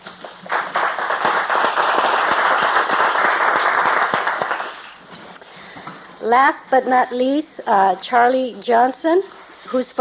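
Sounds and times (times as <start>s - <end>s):
audience applause welcoming a speaker at a conference: 0.1s - 5.0s
speech: 6.3s - 9.9s.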